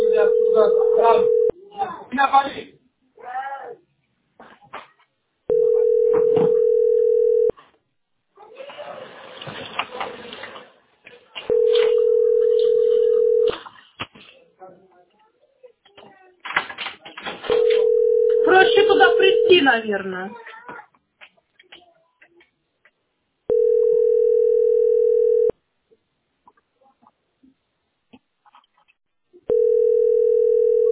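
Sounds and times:
mid-pitched ringback tones on a phone line: 0.0 - 1.5, 5.5 - 7.5, 11.5 - 13.5, 17.5 - 19.8, 23.5 - 25.5, 29.5 - 30.8
speech: 19.9 - 20.4.

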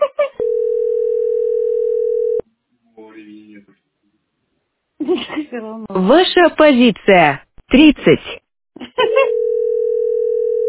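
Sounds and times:
telephone line tone: 0.4 - 2.4, 9.1 - 10.6
speech: 5.6 - 8.4.

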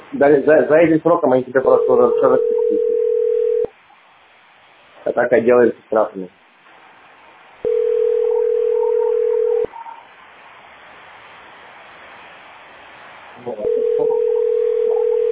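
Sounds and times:
faint hiss: 0.0 - 15.2
speech: 0.1 - 3.0, 5.1 - 6.4
steady telephone tone: 1.8 - 3.7, 7.6 - 9.7, 13.6 - 15.2.

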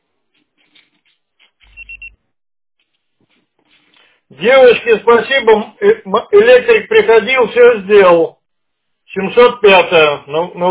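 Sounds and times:
electronic voicemail beep: 1.6 - 2.2
speech: 4.3 - 8.4, 9.1 - 10.6.

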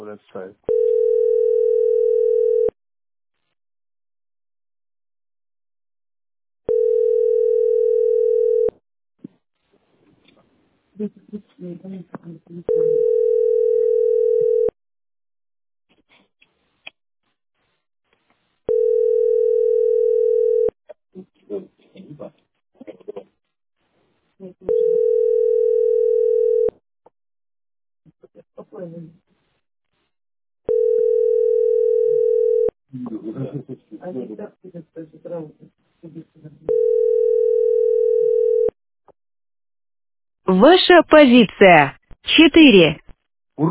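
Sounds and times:
speech: 0.1 - 1.0, 11.0 - 13.6, 28.7 - 29.2, 32.9 - 37.0, 40.4 - 43.0
telephone ringback tone: 0.7 - 2.8, 6.7 - 8.7, 12.7 - 14.7, 18.7 - 20.7, 24.7 - 26.7, 30.7 - 32.7, 36.7 - 38.8.

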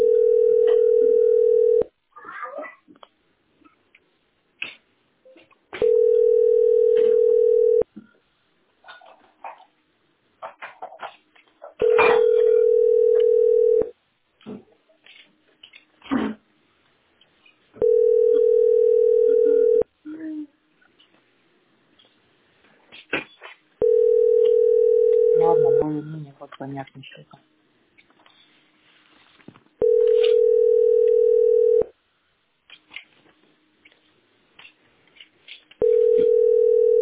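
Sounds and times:
telephone ringing tone while a call is placed: 0.0 - 1.9, 5.8 - 7.9, 11.8 - 13.9, 17.8 - 19.9, 23.8 - 25.8, 29.8 - 31.9, 35.8 - 37.0
speech: 27.1 - 27.5.

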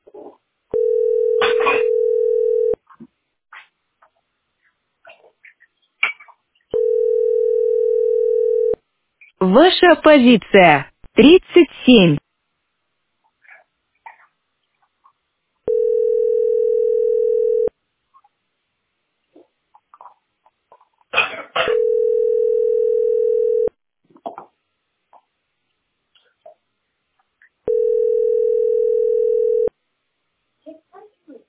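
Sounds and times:
telephone tone on the line: 0.8 - 2.8, 6.8 - 8.8, 15.7 - 17.7, 21.7 - 23.7, 27.7 - 29.7
speech: 9.4 - 12.2.

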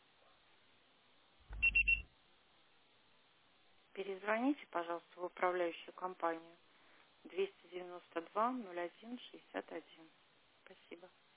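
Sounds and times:
voicemail beep tone: 1.5 - 2.0
speech: 4.0 - 6.6, 7.2 - 11.2.

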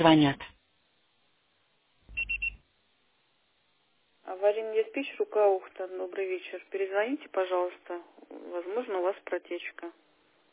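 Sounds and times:
speech: 0.0 - 0.5, 5.0 - 10.1
voicemail beep tone after a recorded phone greeting: 2.1 - 2.6
low hum: 2.1 - 2.7.

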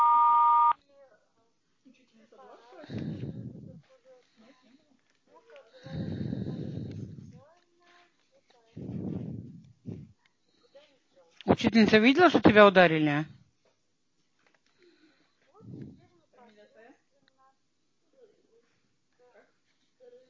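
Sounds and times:
answering machine beep: 0.0 - 0.8
breathy rustling: 2.6 - 10.9
speech: 11.7 - 13.4.

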